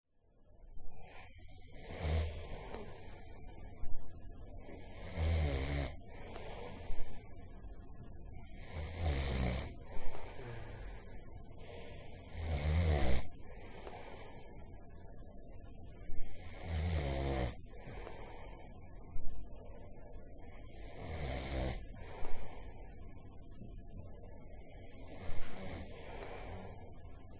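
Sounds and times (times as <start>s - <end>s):
snoring while sleeping: 1.0s - 3.1s, 4.8s - 6.8s, 8.5s - 10.9s, 12.2s - 13.3s, 16.3s - 17.6s, 20.7s - 21.8s, 25.0s - 26.8s.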